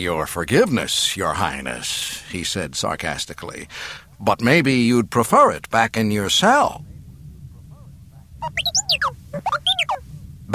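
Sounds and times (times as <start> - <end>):
speech: 0.0 - 6.9, 8.4 - 8.8
low rumbling hum: 6.7 - 10.5
robot droid beeping and whistling: 8.4 - 10.0.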